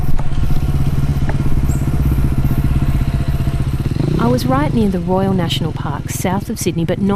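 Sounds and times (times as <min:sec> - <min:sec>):
motorbike engine running on a dirt fire trail: 0:00.0 - 0:07.1
speech: 0:04.2 - 0:07.1.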